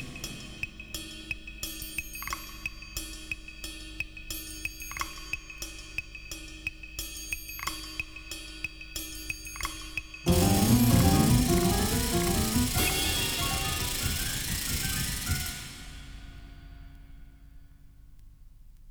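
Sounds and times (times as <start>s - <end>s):
musical sound effect: 10.3s - 16.8s.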